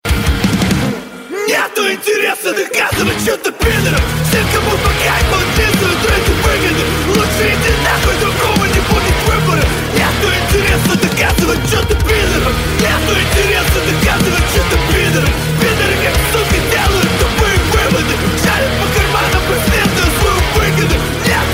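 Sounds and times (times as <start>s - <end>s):
metal cover song: 0.0s - 21.5s.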